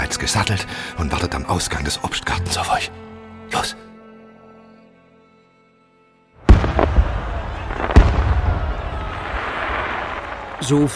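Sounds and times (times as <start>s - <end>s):
speech: 0.1s - 3.9s, 10.6s - 10.9s
fireworks: 6.5s - 10.6s.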